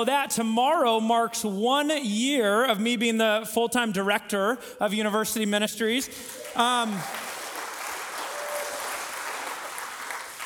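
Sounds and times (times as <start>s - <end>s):
speech: 0.0s - 7.3s
audience applause: 6.3s - 10.4s.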